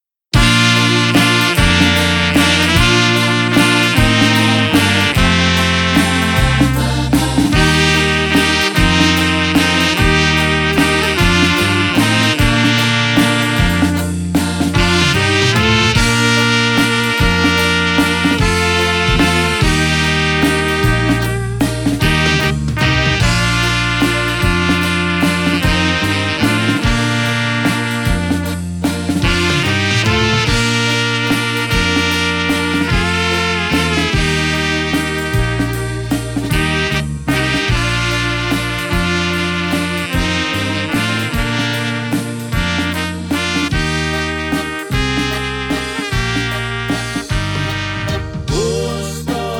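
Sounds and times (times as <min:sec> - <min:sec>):
waltz music: 0:00.4 - 0:49.5.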